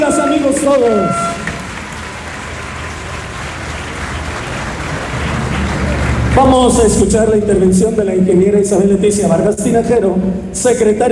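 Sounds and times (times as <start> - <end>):
speech: 0.0 - 1.3, 6.4 - 11.1
audience applause: 0.0 - 7.3.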